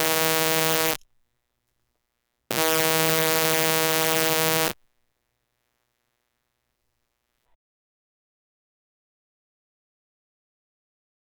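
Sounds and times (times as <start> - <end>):
1960s cartoon bee buzz: 0.0 - 1.0, 2.5 - 4.8.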